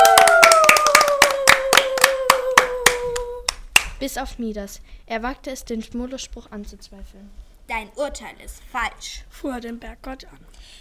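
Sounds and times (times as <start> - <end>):
audience applause: 0.0 - 3.3
speech: 4.0 - 10.7.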